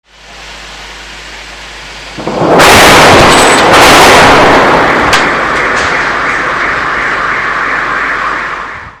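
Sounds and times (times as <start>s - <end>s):
bomb explosion: 2.2s - 7.9s.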